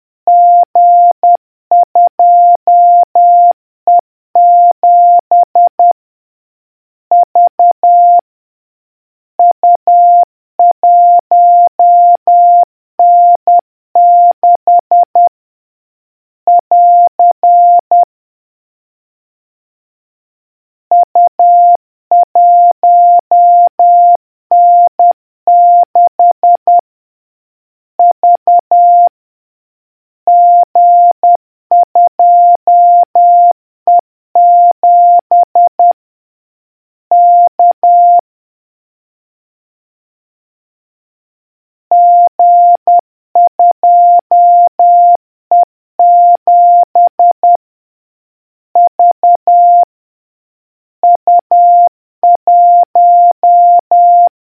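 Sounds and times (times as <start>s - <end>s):
morse code beeps: 0.3s - 5.9s, 7.1s - 8.2s, 9.4s - 15.3s, 16.5s - 18.0s, 20.9s - 26.8s, 28.0s - 29.1s, 30.3s - 36.0s, 37.1s - 38.2s, 41.9s - 47.6s, 48.8s - 49.9s, 51.0s - 54.3s.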